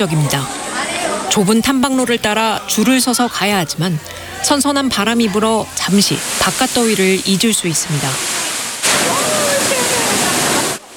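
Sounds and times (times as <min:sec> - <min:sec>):
speech: 0:00.0 - 0:00.6, 0:01.3 - 0:08.3
water stream flowing inside a cave: 0:00.0 - 0:10.9.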